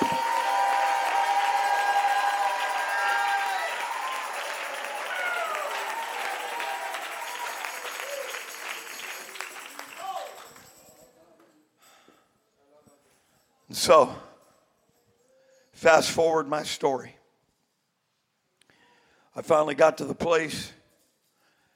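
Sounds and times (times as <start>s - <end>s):
audience shouting: 0.0s - 8.4s
audience clapping: 0.0s - 10.9s
speech: 13.8s - 14.2s, 15.8s - 17.2s, 19.4s - 20.8s.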